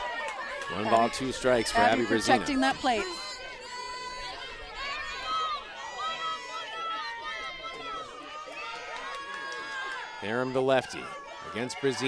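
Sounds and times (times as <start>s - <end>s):
crowd cheering at softball game: 0.0s - 12.0s
speech: 0.7s - 3.2s, 10.2s - 12.0s.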